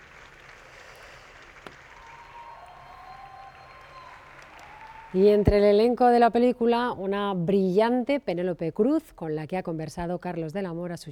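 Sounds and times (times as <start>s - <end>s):
audience applause: 0.0s - 5.5s
cheers: 0.0s - 5.6s
whistles: 0.2s - 5.5s
speech: 5.1s - 11.1s.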